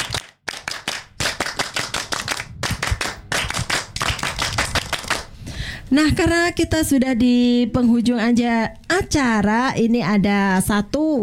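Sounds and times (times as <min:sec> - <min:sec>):
audience clapping scout-style rhythmic claps: 0:00.0 - 0:05.4
speech: 0:05.9 - 0:11.2.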